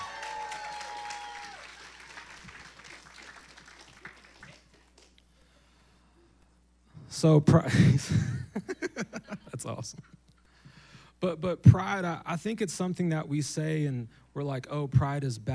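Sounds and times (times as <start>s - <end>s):
scattered cheers: 0.0s - 2.2s
audience applause: 0.0s - 5.1s
speech: 7.1s - 8.4s, 9.8s - 10.1s, 11.2s - 15.5s
laughter: 8.1s - 10.2s.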